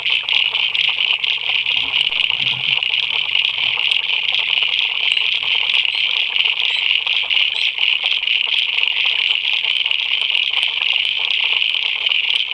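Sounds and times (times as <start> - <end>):
frogs calling in a dense chorus at a pier: 0.0 - 12.4.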